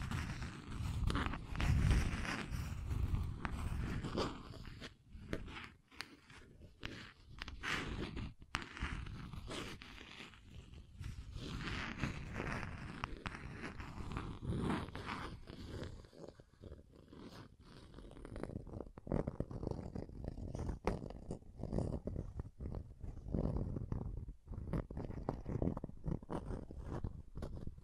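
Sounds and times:
rough scratching and tracing strokes: 0:00.0 - 0:27.8.

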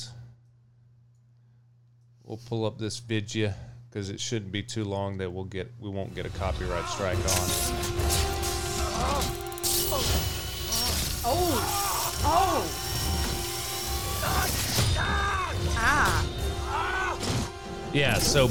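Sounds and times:
speech: 0:02.3 - 0:08.4, 0:09.0 - 0:10.4, 0:11.2 - 0:12.9, 0:17.9 - 0:18.4
surgical drill grinding into bone: 0:06.9 - 0:17.1.

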